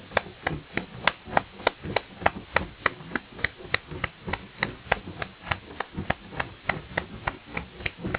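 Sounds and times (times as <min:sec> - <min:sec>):
percussion: 0:00.0 - 0:08.1.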